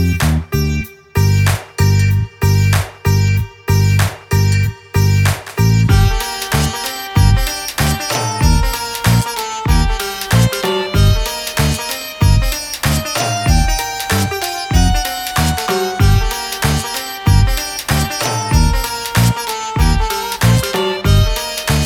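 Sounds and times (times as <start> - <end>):
background music with sitars: 0.0 - 21.8.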